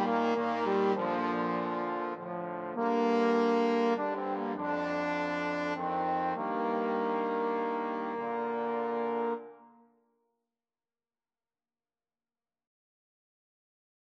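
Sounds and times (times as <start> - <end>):
trombone playing a hymn: 0.0 - 9.7.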